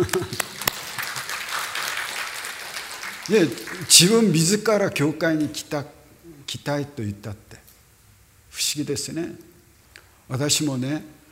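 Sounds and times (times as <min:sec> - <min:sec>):
audience applause: 0:00.0 - 0:04.0
speech: 0:03.3 - 0:07.5, 0:08.6 - 0:09.5, 0:10.3 - 0:11.2.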